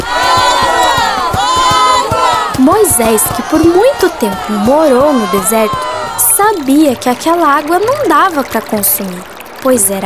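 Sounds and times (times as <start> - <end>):
crowd running and shouting excitedly: 0.0 - 8.1
speech: 3.0 - 10.0.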